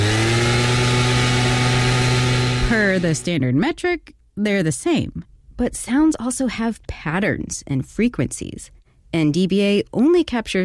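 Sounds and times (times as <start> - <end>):
gas-powered leaf blower droning: 0.0 - 3.3
speech: 3.0 - 10.6.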